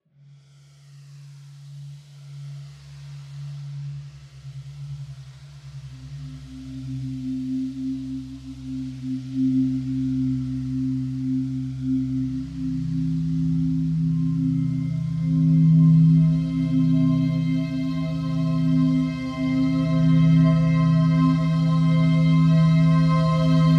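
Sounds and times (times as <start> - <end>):
soundscape: 6.3 - 23.7.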